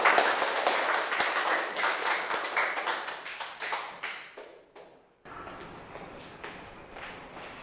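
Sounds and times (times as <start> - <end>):
crowd clapping: 0.0 - 5.7.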